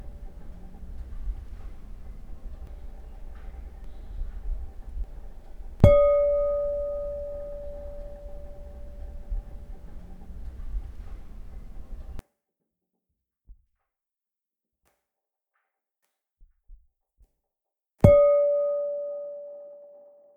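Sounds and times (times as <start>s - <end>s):
Japanese singing bowls: 0.0s - 12.2s, 18.1s - 20.2s.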